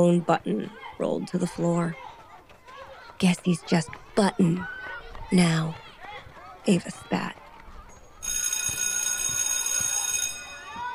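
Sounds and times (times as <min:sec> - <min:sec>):
speech: 0:00.0 - 0:02.1, 0:03.2 - 0:05.8, 0:06.6 - 0:07.4
school recess bell ringing: 0:08.2 - 0:10.9.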